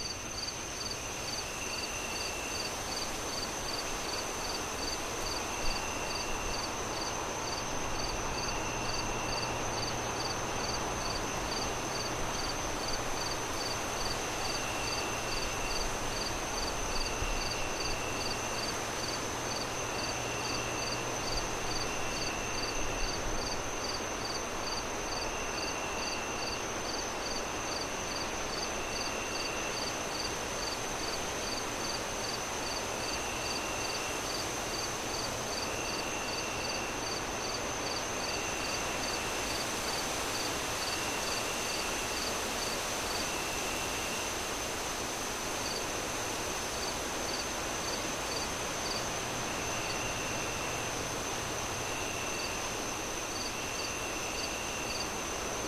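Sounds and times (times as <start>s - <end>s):
crickets chirping: 0.0s - 55.6s.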